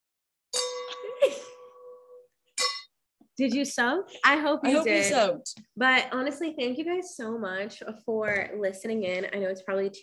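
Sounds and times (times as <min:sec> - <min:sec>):
wine glasses clinking: 0:00.6 - 0:03.0
speech: 0:03.4 - 0:10.0.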